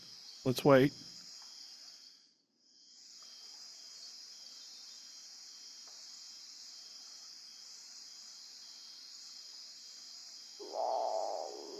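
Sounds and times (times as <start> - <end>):
speech: 0.4 - 1.1
great potoo growl-like call: 10.6 - 11.7.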